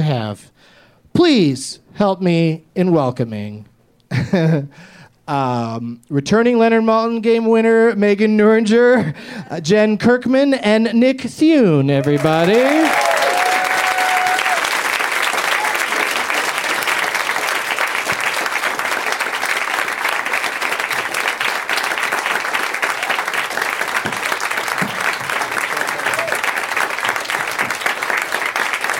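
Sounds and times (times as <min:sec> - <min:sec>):
speech: 0:00.1 - 0:13.1
audience clapping: 0:12.0 - 0:28.9.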